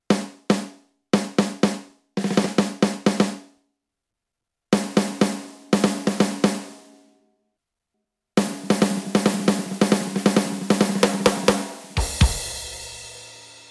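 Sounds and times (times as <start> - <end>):
muffled Yamaha DTX6K3 snare drum: 0.0 - 3.6, 4.8 - 6.9, 8.4 - 13.6.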